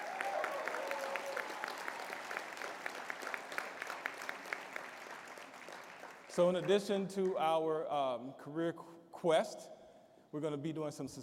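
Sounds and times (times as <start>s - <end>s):
audience applause: 0.0s - 6.8s
speech: 6.4s - 11.2s.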